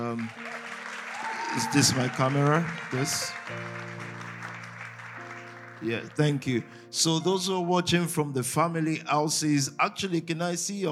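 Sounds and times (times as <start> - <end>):
speech: 0.0 - 0.6, 1.5 - 4.1, 5.8 - 10.9
applause: 0.0 - 6.7.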